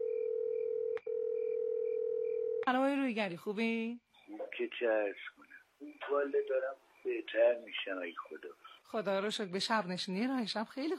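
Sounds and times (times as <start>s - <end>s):
telephone line tone while a call is placed to a guest: 0.0s - 2.6s
speech: 2.7s - 10.9s.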